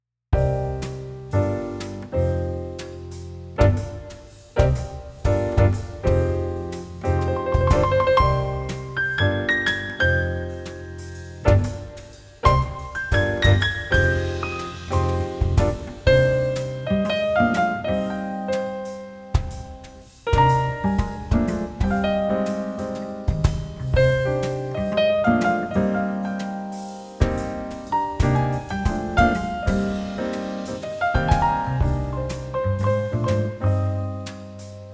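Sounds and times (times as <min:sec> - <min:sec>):
jazzy blues music: 0:00.4 - 0:34.9.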